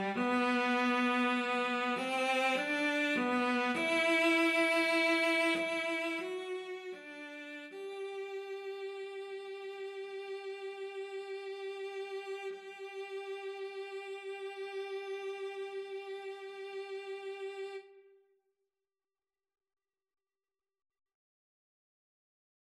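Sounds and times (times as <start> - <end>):
cello duet: 0.0 - 18.0.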